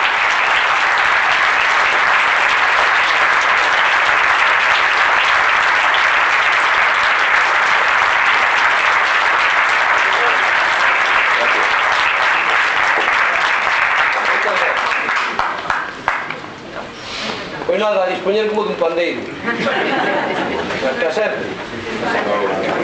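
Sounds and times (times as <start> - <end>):
audience applause: 0.0 - 16.6
speech: 18.2 - 21.6
laughter: 19.4 - 22.7.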